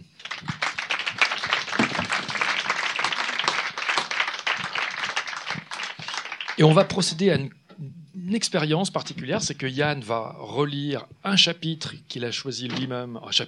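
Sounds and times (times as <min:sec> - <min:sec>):
audience applause: 0:00.0 - 0:07.0
speech: 0:06.6 - 0:13.4.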